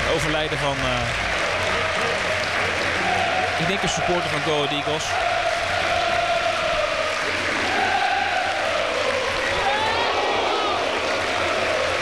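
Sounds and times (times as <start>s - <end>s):
stadium crowd applause: 0.0s - 12.0s
speech: 0.2s - 1.4s, 3.6s - 5.4s.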